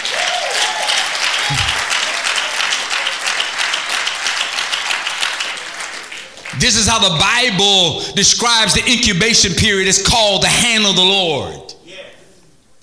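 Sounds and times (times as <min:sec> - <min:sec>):
audience clapping: 0:00.0 - 0:07.6
speech: 0:01.5 - 0:01.7, 0:06.6 - 0:11.6.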